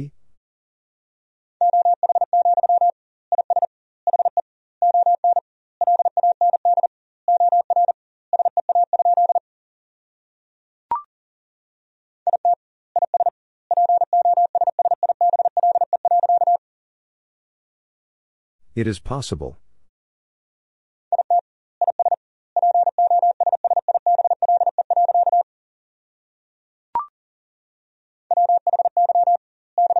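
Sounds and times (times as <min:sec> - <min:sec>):
Morse code beeps at 40 wpm: 0:01.6 - 0:09.4, 0:12.3 - 0:16.6, 0:21.2 - 0:25.4, 0:28.3 - 0:29.9
speech: 0:18.8 - 0:19.7.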